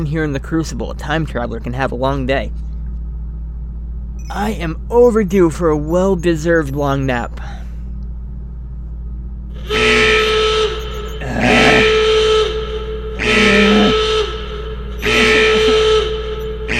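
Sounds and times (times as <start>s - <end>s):
speech: 0.0s - 2.7s, 4.3s - 7.6s
computer alarm blaring: 4.2s - 7.7s, 9.5s - 16.7s.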